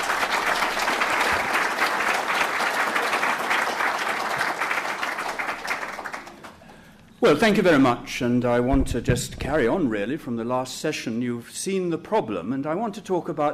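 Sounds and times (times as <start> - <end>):
crowd applause: 0.0 - 6.8
speech: 7.2 - 13.5.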